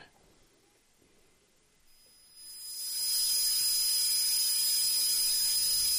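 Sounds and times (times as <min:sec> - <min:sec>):
constant hissing noise: 0:00.0 - 0:05.9
simulated tinnitus high-pitched ringing tone: 0:01.9 - 0:05.9.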